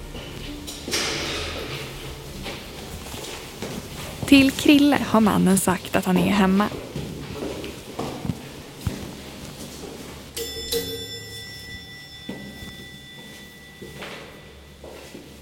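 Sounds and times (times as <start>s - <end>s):
speech: 4.3s - 6.8s
doorbell ringing: 10.3s - 15.4s.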